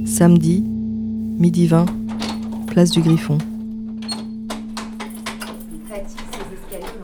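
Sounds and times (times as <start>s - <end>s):
speech: 0.2s - 0.7s, 1.4s - 2.0s, 2.7s - 3.5s
key turning in a stiff door lock: 1.5s - 7.0s.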